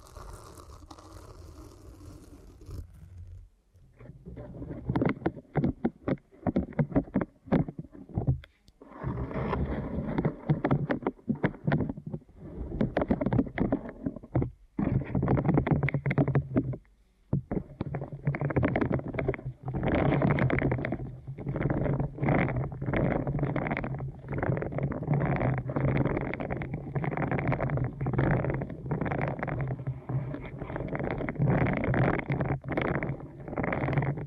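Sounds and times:
deep ear canal massage rubbing against microphone: 0.0s - 16.8s, 17.4s - 34.2s.

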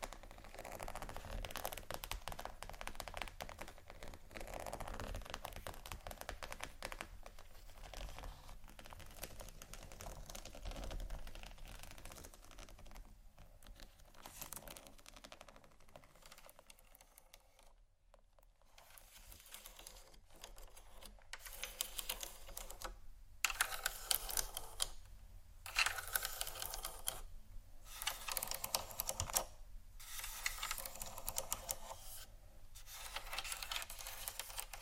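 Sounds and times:
crackly scratching: 0.0s - 25.0s, 25.6s - 34.8s.

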